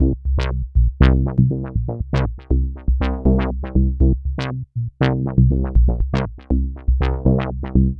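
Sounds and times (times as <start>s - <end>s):
bassline: 0.0s - 7.9s.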